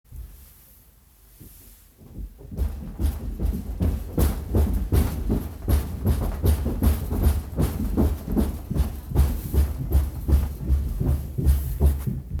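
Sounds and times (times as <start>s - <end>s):
stomping: 2.4s - 12.3s.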